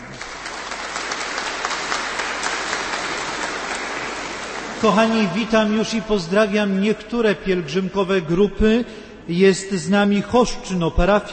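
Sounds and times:
audience applause: 0.0 - 5.6
speech: 4.8 - 11.3.

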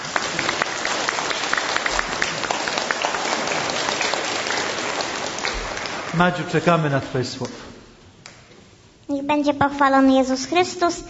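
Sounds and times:
warm applause: 0.0 - 7.2
speech: 6.2 - 7.7, 9.3 - 11.0.

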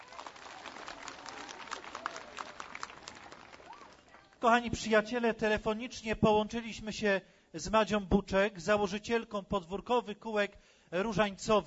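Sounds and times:
applause: 0.0 - 4.5
speech: 4.4 - 11.6.

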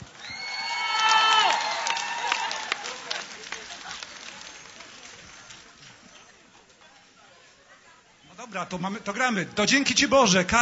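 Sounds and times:
crowd clapping: 0.0 - 6.2
speech: 8.5 - 10.6.

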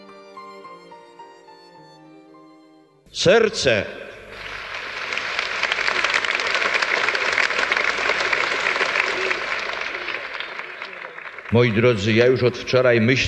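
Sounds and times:
speech: 3.1 - 4.0, 11.5 - 13.2
audience applause: 4.3 - 12.7.

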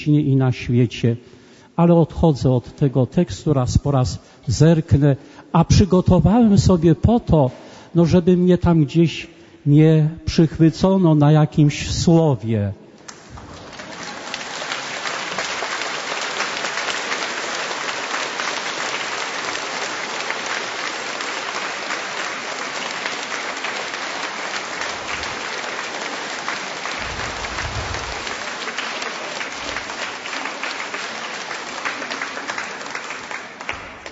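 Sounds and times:
speech: 0.0 - 12.8
audience applause: 13.1 - 34.0.

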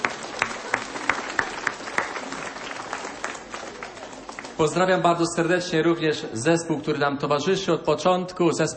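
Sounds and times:
applause: 0.0 - 5.0
speech: 4.6 - 8.7.

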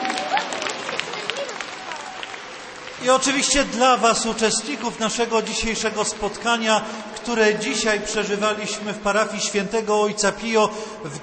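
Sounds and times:
applause for a bishop at a parish gathering with children: 0.0 - 6.6
speech: 3.0 - 11.2.

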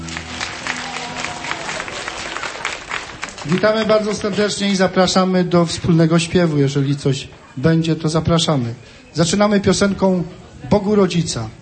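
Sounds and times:
audience applause greeting a band at the start of a concert: 0.0 - 5.2
speech: 3.4 - 11.6.

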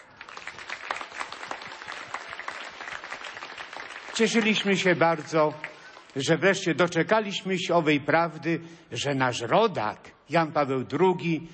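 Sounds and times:
applause: 0.0 - 6.5
speech: 4.2 - 11.5.

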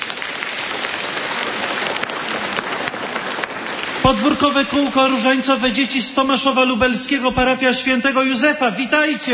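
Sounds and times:
crowd applause: 0.0 - 6.4
speech: 4.1 - 9.3.

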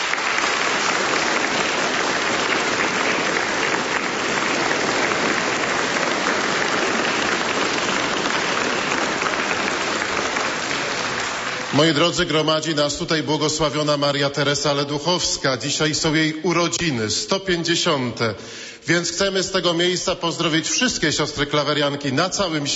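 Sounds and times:
big round of applause: 0.0 - 12.5
speech: 11.8 - 22.7.

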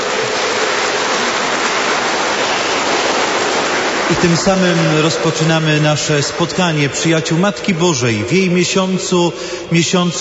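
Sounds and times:
large crowd applauding warmly: 0.0 - 8.2
speech: 4.1 - 10.2.

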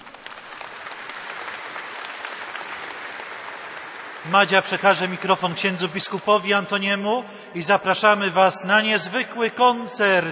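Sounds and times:
audience applause: 0.0 - 5.9
speech: 4.2 - 10.2.

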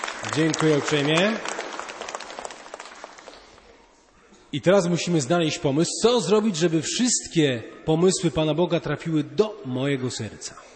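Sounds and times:
small group applauding: 0.0 - 3.8
speech: 0.3 - 1.5, 4.5 - 10.7.

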